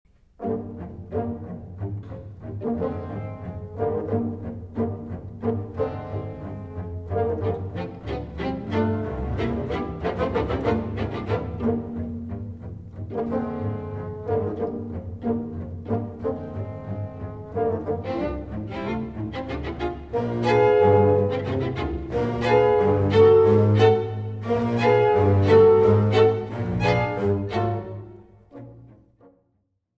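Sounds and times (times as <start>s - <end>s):
chamber orchestra playing a concerto: 0.2s - 29.3s.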